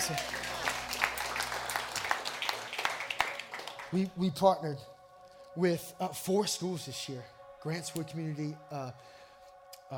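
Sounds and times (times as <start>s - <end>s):
audience clapping: 0.0s - 4.4s
speech: 0.1s - 0.3s, 3.9s - 4.9s, 5.6s - 9.2s.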